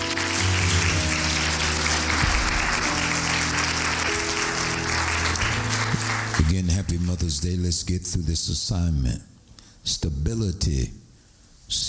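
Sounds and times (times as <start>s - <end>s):
audience clapping hands: 0.0s - 7.4s
speech: 7.5s - 11.0s, 11.7s - 11.8s.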